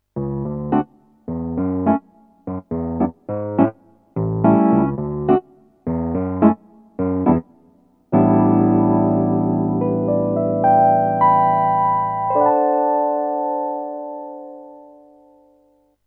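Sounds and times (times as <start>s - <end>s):
Roland RD-08 Wurly electric piano: 0.2s - 7.5s, 8.1s - 15.8s.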